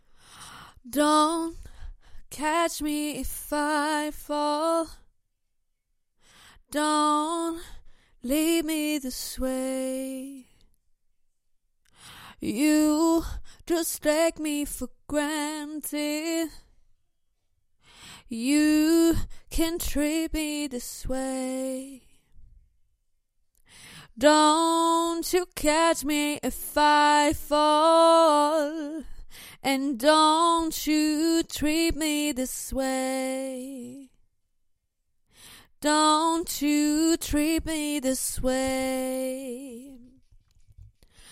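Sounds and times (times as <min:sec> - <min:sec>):
a cappella pop singing: 0:00.0 - 0:05.1, 0:06.6 - 0:10.6, 0:12.3 - 0:16.8, 0:18.2 - 0:22.3, 0:23.9 - 0:34.2, 0:35.7 - 0:40.3.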